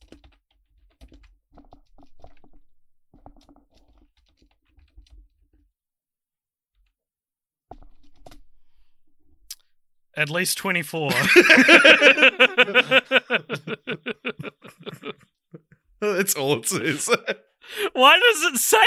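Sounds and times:
rapid typing on a computer keyboard while entering a Google search: 0:00.0 - 0:05.3, 0:07.8 - 0:08.4
speech: 0:10.2 - 0:15.2, 0:16.0 - 0:18.8
laughter: 0:11.1 - 0:18.6.

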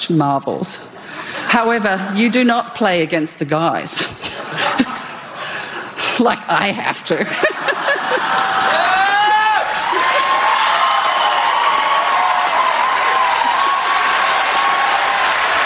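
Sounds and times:
speech: 0:00.1 - 0:04.9, 0:06.2 - 0:08.4
laughter: 0:04.0 - 0:06.2, 0:07.1 - 0:10.7
audience applause: 0:08.0 - 0:15.6.

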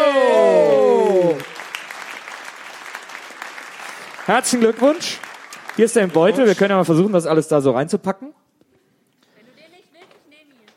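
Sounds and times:
audience applause: 0:00.0 - 0:07.1
speech: 0:04.3 - 0:08.4.

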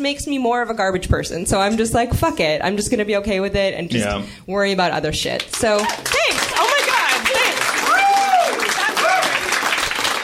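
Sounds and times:
speech: 0:00.0 - 0:06.4
crowd clapping: 0:05.4 - 0:10.2.

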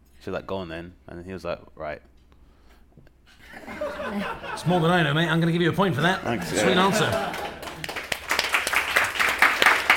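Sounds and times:
speech: 0:00.2 - 0:02.1, 0:03.0 - 0:07.4
laughter: 0:03.4 - 0:05.2, 0:06.0 - 0:08.0
audience applause: 0:06.4 - 0:09.9.

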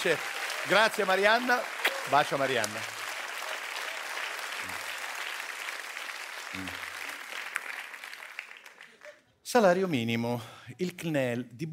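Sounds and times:
speech: 0:00.0 - 0:03.0, 0:06.5 - 0:06.8, 0:09.5 - 0:11.7
audience applause: 0:00.0 - 0:09.2.

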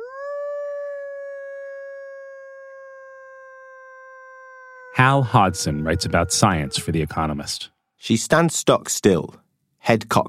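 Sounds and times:
woman howling in imitation of a wolf: 0:00.0 - 0:07.2
speech: 0:04.9 - 0:10.2.

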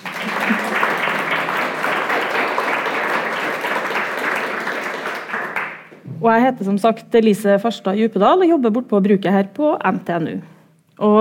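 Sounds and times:
audience applause: 0:00.0 - 0:06.0
speech: 0:06.2 - 0:11.2.

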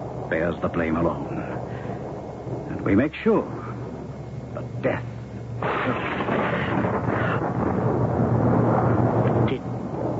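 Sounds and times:
speech: 0:00.3 - 0:01.5, 0:02.5 - 0:03.6, 0:04.6 - 0:06.0
thunder crash radio drama sound effect for lightning above the Capitol: 0:05.6 - 0:10.1.

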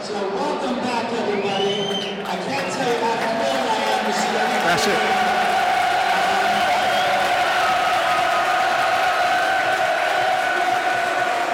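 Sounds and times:
large stadium crowd cheering: 0:00.0 - 0:11.5
crowd chanting: 0:03.5 - 0:11.5
speech: 0:04.8 - 0:05.1.

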